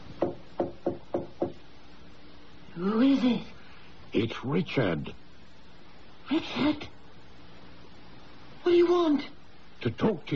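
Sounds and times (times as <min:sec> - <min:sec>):
soft knocks on a wooden door: 0:00.2 - 0:01.6
speech: 0:02.8 - 0:03.5, 0:04.1 - 0:05.2, 0:06.3 - 0:06.9, 0:08.6 - 0:10.3.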